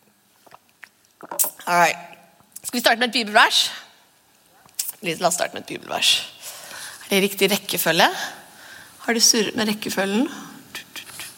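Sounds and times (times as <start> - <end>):
person drinking water: 0.4 - 1.6
speech: 1.7 - 2.1, 2.7 - 3.8, 5.0 - 6.3, 7.1 - 8.4, 9.0 - 10.4.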